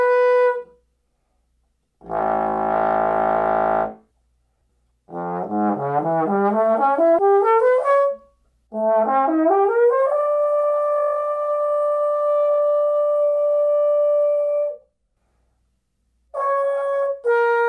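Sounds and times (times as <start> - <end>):
trombone playing arioso: 0.0 - 0.7, 2.0 - 4.0, 5.1 - 14.8, 16.4 - 17.6.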